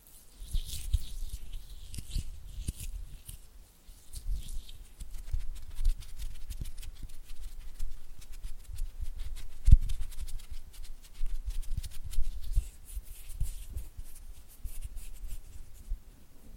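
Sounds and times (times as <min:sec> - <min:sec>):
oily hands slapping and rubbing: 0:00.0 - 0:16.0.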